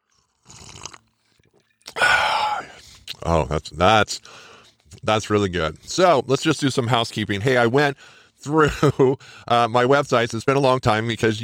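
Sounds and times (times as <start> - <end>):
person taking a sip of a drink: 0.0 - 3.3
speech: 3.3 - 11.4.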